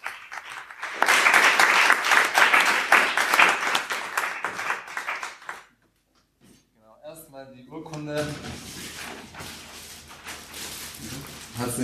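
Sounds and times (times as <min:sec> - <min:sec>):
audience applause: 0:00.0 - 0:05.7.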